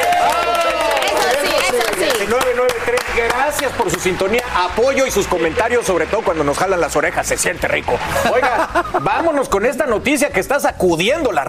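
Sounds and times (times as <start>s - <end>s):
applause: 0.0s - 8.0s
voices cheering and shouting: 0.0s - 9.0s
speech: 2.6s - 11.4s
laughter: 7.8s - 9.6s.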